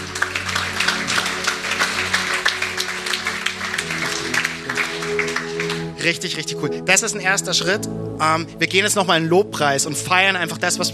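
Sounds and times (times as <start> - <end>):
audience applause: 0.0 - 6.0
speech: 6.0 - 10.9.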